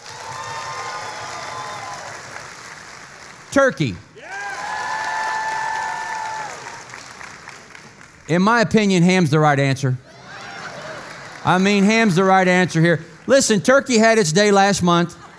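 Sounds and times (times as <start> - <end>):
audience applause voting: 0.0 - 3.5, 4.2 - 8.3, 10.1 - 13.3
speech: 3.5 - 4.0, 8.3 - 10.0, 11.4 - 15.2.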